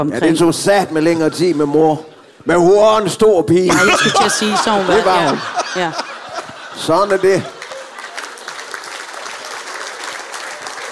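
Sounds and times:
speech: 0.0s - 6.1s, 6.8s - 7.6s
laughter: 3.6s - 9.0s
audience applause: 5.0s - 10.9s.

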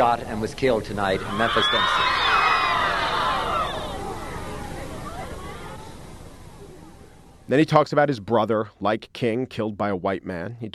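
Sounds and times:
speech: 0.1s - 2.4s, 7.5s - 10.7s
crowd gasping in shock: 1.2s - 5.9s.

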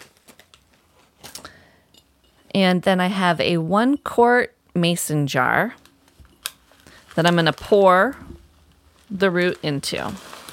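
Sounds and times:
speech: 2.6s - 5.8s, 7.2s - 8.3s, 9.1s - 10.3s
foil bag being cut open: 6.4s - 10.5s.

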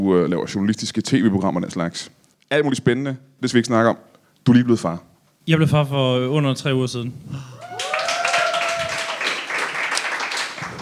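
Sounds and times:
speech: 0.0s - 7.6s
audience applause: 7.5s - 10.8s.

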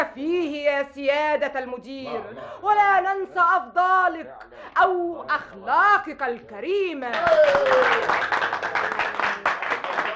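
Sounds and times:
speech: 0.2s - 8.7s
audience applause at a ceremony honouring a director: 7.1s - 10.1s.

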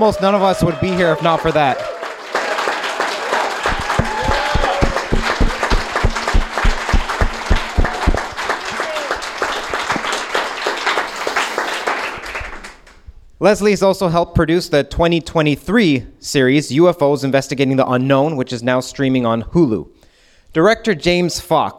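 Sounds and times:
speech: 0.0s - 1.9s, 13.4s - 21.7s
audience applause: 0.0s - 13.0s.

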